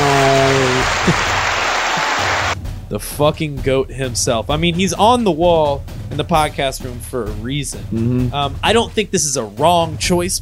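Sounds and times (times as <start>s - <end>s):
applause sound effect: 0.0s - 2.6s
speech: 2.9s - 10.3s.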